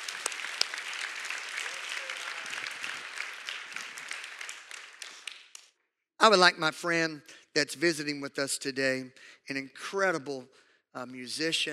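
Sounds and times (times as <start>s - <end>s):
room full of people applauding: 0.0s - 5.7s
speech: 6.2s - 11.7s.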